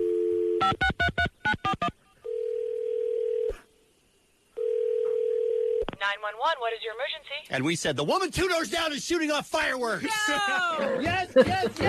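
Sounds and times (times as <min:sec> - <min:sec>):
dial tone: 0:00.0 - 0:00.8, 0:02.3 - 0:03.6, 0:04.6 - 0:05.8
speech: 0:00.7 - 0:01.3, 0:06.2 - 0:11.8
held telephone tone: 0:02.2 - 0:03.6, 0:04.6 - 0:05.9
laughter: 0:10.0 - 0:11.8.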